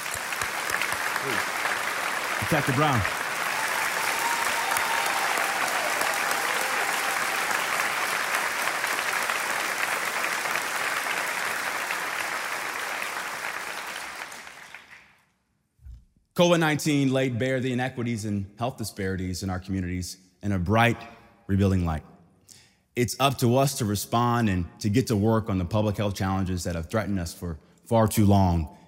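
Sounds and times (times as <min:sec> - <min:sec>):
audience applause: 0:00.0 - 0:15.1
speech: 0:01.2 - 0:01.6, 0:02.4 - 0:03.2, 0:16.4 - 0:22.1, 0:23.0 - 0:28.8.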